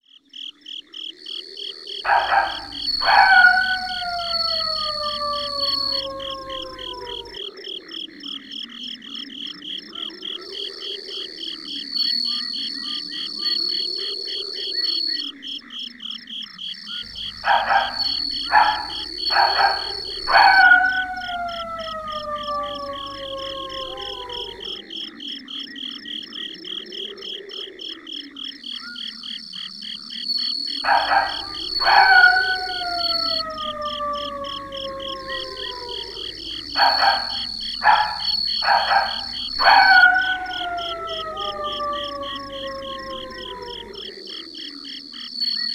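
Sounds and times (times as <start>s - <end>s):
ambience: 2.1s - 7.4s, 17.0s - 24.9s, 30.8s - 44.3s.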